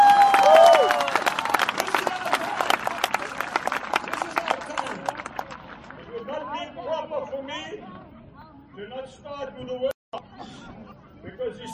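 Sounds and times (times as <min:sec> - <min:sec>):
audience clapping: 0:00.0 - 0:06.1.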